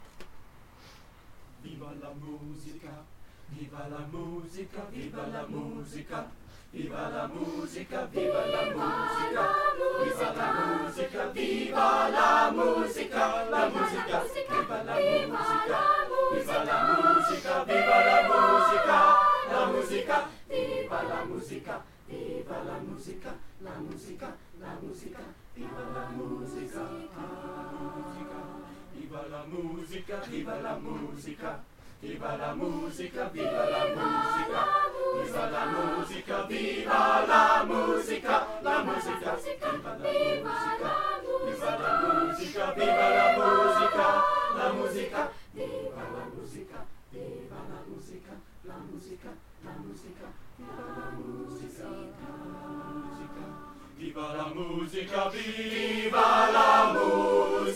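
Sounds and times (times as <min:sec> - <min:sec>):
chorus singing: 0:01.6 - 0:57.7.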